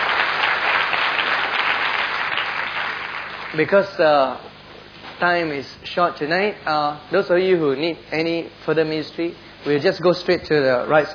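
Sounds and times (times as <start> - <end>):
audience applause: 0.0 - 3.6
speech: 3.6 - 4.5, 5.2 - 11.1.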